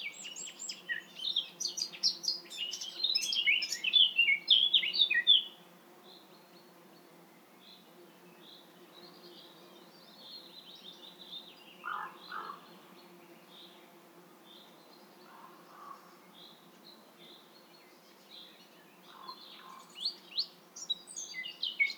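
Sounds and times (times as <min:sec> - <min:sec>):
Eurasian blackcap Sylvia atricapilla singing: 0:00.0 - 0:05.5.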